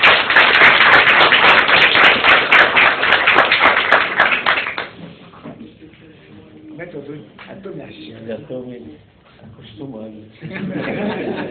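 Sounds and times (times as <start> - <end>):
audience applauding: 0.0 - 5.0
speech: 8.4 - 10.9
laughter: 10.4 - 11.4.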